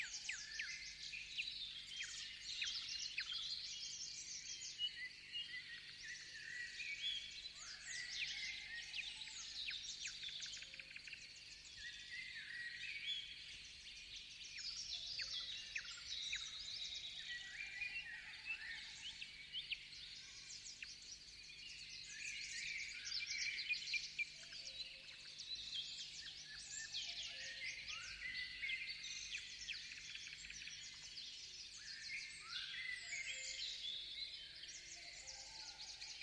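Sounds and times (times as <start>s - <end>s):
birds in a forest: 0.0s - 36.2s.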